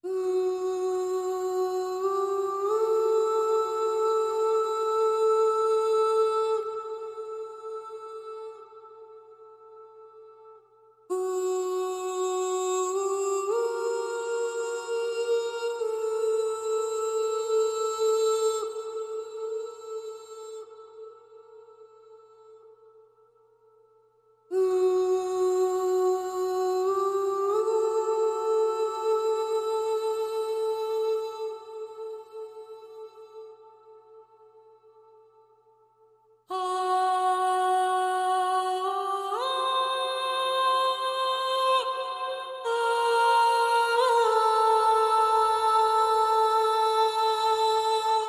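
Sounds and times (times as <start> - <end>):
person singing: 0.0 - 10.5, 11.1 - 22.8, 24.5 - 34.7, 36.5 - 48.2.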